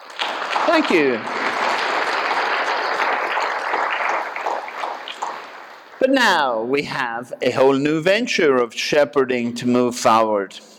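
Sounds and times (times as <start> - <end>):
audience applause: 0.0 - 6.4
speech: 0.7 - 1.4, 6.1 - 10.7.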